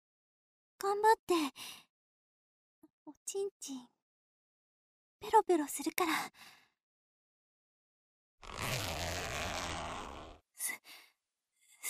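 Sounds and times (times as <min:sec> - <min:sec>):
speech: 0:00.8 - 0:01.8, 0:03.1 - 0:04.0, 0:05.2 - 0:06.6, 0:08.4 - 0:09.0, 0:10.6 - 0:11.0
zipper of trousers being pulled down: 0:08.4 - 0:10.4.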